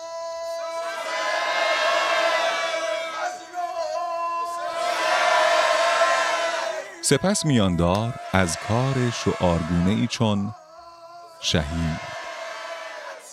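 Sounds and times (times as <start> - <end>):
mourners shouting in response to a chant leader: 0.0 - 13.3
speech: 7.1 - 10.6, 11.4 - 12.2.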